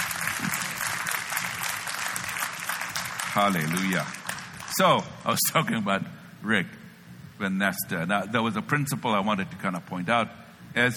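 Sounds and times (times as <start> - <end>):
audience clapping: 0.0 - 5.3
speech: 3.4 - 4.2, 4.8 - 6.8, 7.4 - 10.9.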